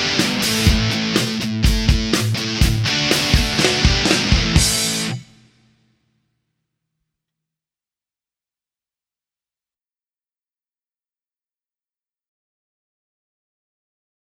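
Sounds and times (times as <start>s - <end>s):
backing music: 0.0s - 5.4s.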